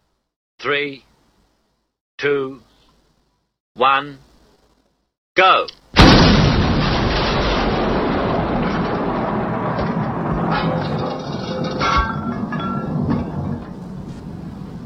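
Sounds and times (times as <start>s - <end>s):
speech: 0.6s - 1.1s, 2.2s - 2.7s, 3.8s - 4.3s, 5.4s - 5.8s
explosion blowing doors off: 6.0s - 14.8s.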